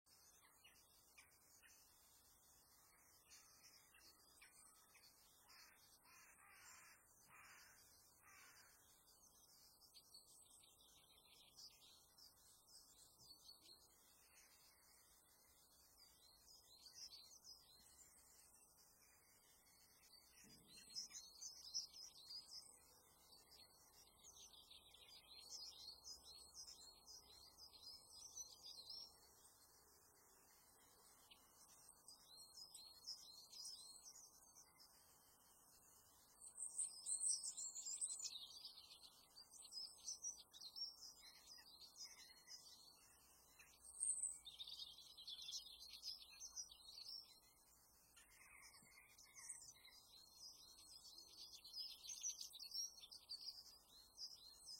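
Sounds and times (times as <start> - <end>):
summer bird: 0.0 - 54.7.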